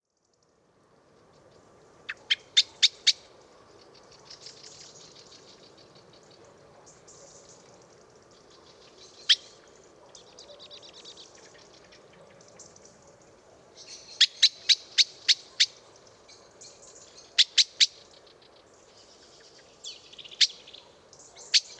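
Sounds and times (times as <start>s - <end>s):
common blackbird chink calls: 2.1s - 13.2s, 13.8s - 21.7s.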